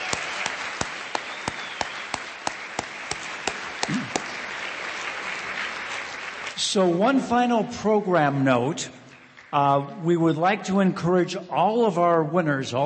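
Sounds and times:
applause: 0:00.0 - 0:07.4, 0:09.1 - 0:09.6
speech: 0:03.9 - 0:04.2, 0:06.7 - 0:12.8.

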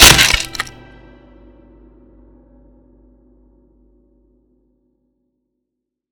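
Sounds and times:
wooden staff cracking and splintering apart: 0:00.0 - 0:00.7.

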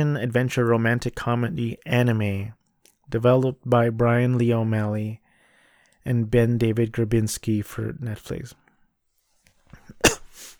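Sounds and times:
speech: 0:00.0 - 0:05.2, 0:06.0 - 0:08.6
cough into the microphone: 0:09.8 - 0:10.5.

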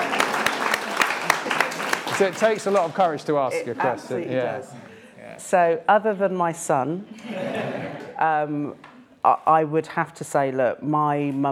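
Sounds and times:
audience applause: 0:00.0 - 0:03.5
speech: 0:02.2 - 0:11.5
laughter: 0:07.1 - 0:08.2.

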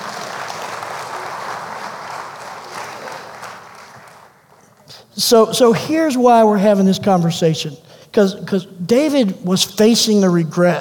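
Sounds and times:
audience applause: 0:00.0 - 0:04.5
speech: 0:04.9 - 0:10.7.

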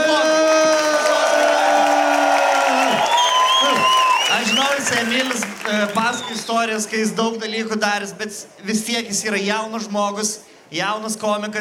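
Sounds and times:
crowd cheering and whooping for a young comedian: 0:00.0 - 0:07.1
speech: 0:05.2 - 0:11.5.

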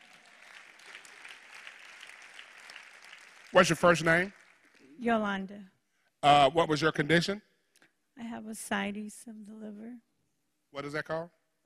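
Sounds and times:
audience clapping: 0:00.0 - 0:05.0
speech: 0:03.5 - 0:04.4, 0:05.0 - 0:07.5, 0:08.2 - 0:10.1, 0:10.7 - 0:11.4.

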